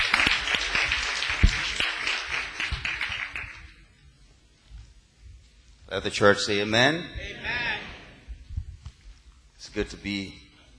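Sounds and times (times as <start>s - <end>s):
church congregation applause: 0.0s - 3.8s
speech: 5.9s - 7.2s, 9.8s - 10.4s.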